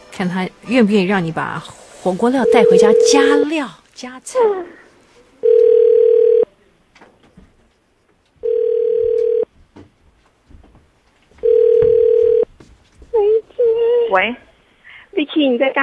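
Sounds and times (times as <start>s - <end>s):
speech: 0.2s - 4.8s, 14.2s - 14.4s, 15.2s - 15.8s
telephone ringback tone of outgoing call: 2.4s - 3.5s, 5.4s - 6.5s, 8.4s - 9.5s, 11.4s - 12.5s.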